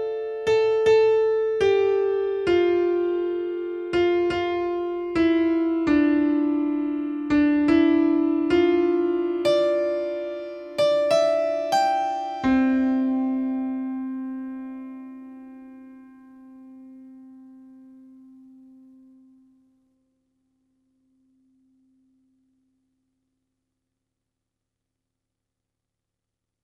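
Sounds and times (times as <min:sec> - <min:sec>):
piano: 0:00.0 - 0:19.9.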